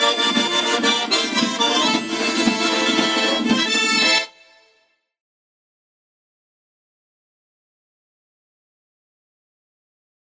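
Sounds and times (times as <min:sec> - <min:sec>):
Georgian folk dance music: 0:00.0 - 0:04.8.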